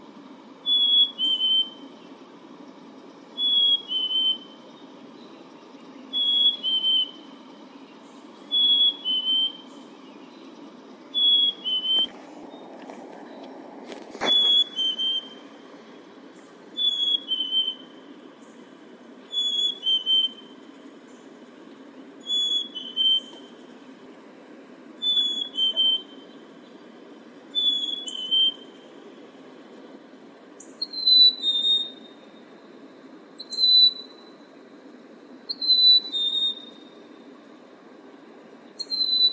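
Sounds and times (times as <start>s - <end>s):
Black-capped chickadee calling: 0.6s - 2.2s, 3.4s - 12.8s, 13.4s - 21.3s, 22.2s - 23.6s, 25.0s - 26.4s, 27.5s - 29.0s, 30.6s - 32.2s, 33.4s - 34.3s, 35.5s - 36.9s, 38.7s - 39.3s.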